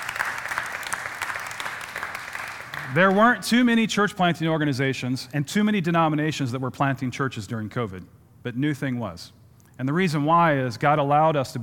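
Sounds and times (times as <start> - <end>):
audience applause: 0.0 - 3.2
speech: 2.9 - 11.6.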